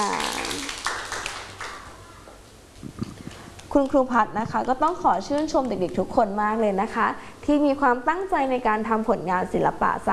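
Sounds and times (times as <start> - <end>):
small group of children clapping: 0.0 - 2.1
speech: 3.8 - 10.1.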